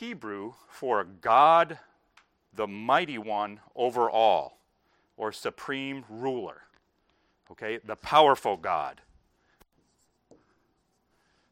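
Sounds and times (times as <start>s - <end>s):
speech: 0.0s - 1.9s, 2.5s - 4.6s, 5.2s - 6.7s, 7.5s - 9.1s
writing on a board: 9.6s - 11.5s.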